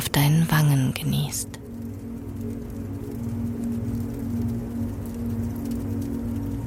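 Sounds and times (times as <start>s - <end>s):
burning wood crackling: 0.0s - 6.6s
speech: 0.2s - 1.6s.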